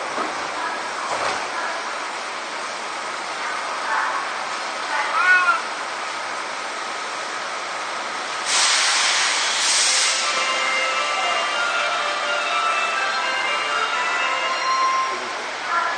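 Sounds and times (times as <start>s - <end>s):
Seibu 6000 series lightweight stainless steel train: 0.0s - 15.9s.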